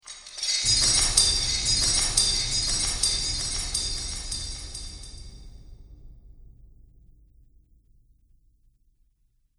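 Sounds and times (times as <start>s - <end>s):
metal chains: 0.0s - 5.3s
magic ambience: 0.3s - 5.4s.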